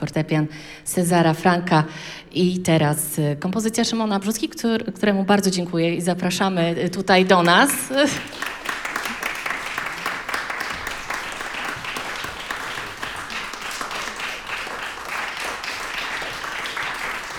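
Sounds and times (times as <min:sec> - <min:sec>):
speech: 0:00.0 - 0:08.5
audience applause after a performance: 0:07.6 - 0:17.3.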